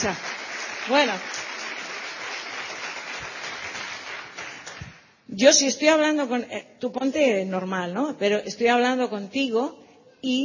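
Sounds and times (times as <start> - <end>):
speech: 0.0 - 1.5, 5.4 - 10.4
audience applause: 0.0 - 5.0.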